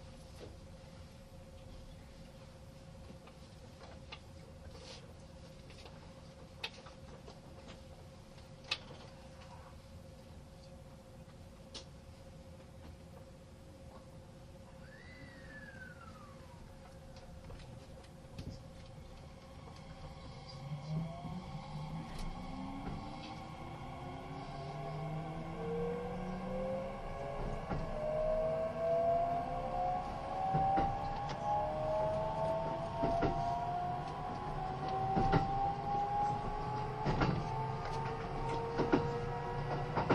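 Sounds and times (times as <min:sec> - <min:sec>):
steady mid hum: 0:00.0 - 0:40.1
Kintetsu 80000 series Hinotori train idling with a low rumble: 0:05.7 - 0:40.1
Kintetsu 80000 series Hinotori train motors whining: 0:14.8 - 0:40.1.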